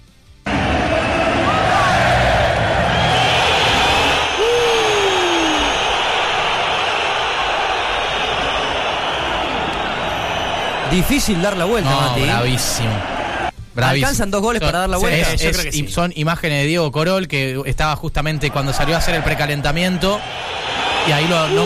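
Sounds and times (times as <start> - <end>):
huge stadium crowd whistling and jeering in disapproval: 0.5 - 13.5, 18.4 - 21.6
speech: 11.0 - 13.2, 13.8 - 21.6.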